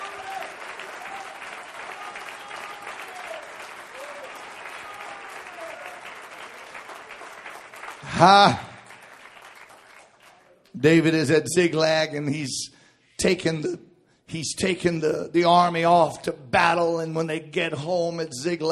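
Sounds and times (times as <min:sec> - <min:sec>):
audience clapping hands: 0:00.0 - 0:11.2
speech: 0:08.1 - 0:08.7, 0:10.8 - 0:18.7.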